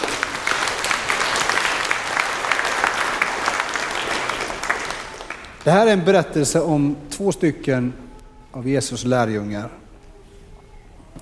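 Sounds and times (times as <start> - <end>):
audience applause: 0.0 - 6.1
speech: 5.6 - 9.8.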